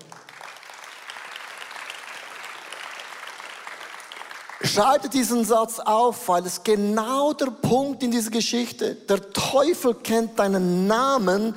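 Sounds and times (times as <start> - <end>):
audience applause: 0.0 - 4.8
speech: 4.6 - 11.5.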